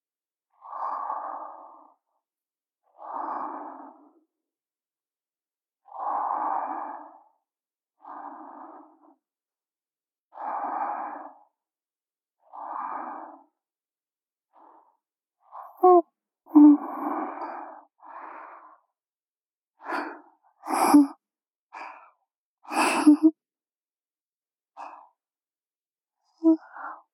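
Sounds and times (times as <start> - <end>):
student breathing in sleep: 0.6 - 2.0, 2.9 - 4.3, 5.8 - 7.4, 8.0 - 9.2, 10.3 - 11.6, 12.4 - 13.6, 14.5 - 18.9, 19.8 - 23.4, 24.8 - 25.2.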